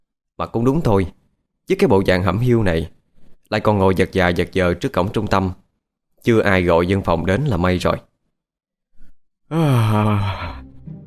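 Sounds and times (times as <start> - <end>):
speech: 0.4 - 5.6, 6.2 - 8.1, 9.5 - 10.6
person yawning while patting hand over mouth: 9.5 - 10.8.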